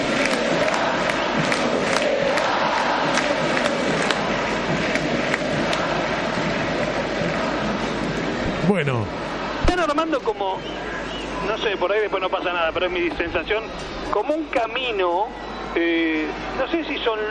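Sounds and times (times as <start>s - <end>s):
football stadium crowd chanting: 0.0s - 8.4s, 9.1s - 9.7s
speech: 8.8s - 9.2s, 9.9s - 10.9s, 11.5s - 17.3s.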